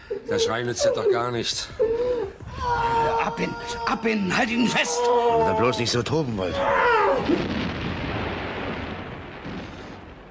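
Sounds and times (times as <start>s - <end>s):
speech: 0.3s - 7.6s
aerial bombs exploding on an artillery battery: 7.0s - 10.2s.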